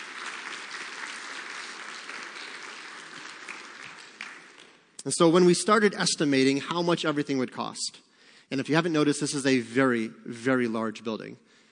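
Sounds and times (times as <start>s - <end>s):
audience applause: 0.0s - 5.0s
speech: 5.0s - 11.6s.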